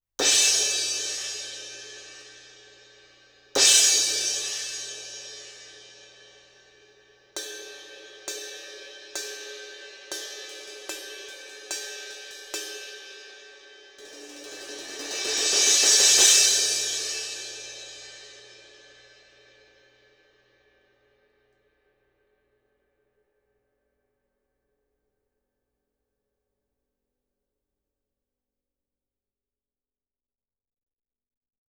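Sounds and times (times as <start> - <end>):
crash cymbal: 0.2 - 19.9.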